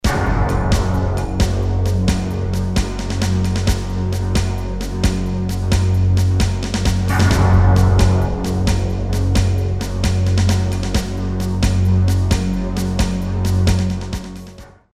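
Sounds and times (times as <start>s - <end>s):
industrial music: 0.0s - 14.8s.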